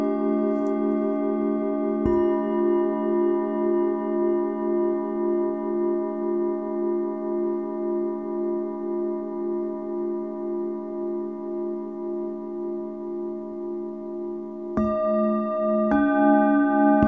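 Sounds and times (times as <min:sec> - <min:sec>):
singing bowls for sound meditation: 0:00.0 - 0:17.0.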